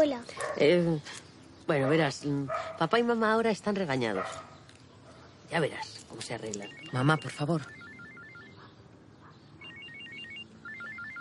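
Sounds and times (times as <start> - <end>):
speech: 0.0 - 4.5, 5.5 - 7.8
telephone ringing: 6.4 - 8.7, 9.6 - 11.2.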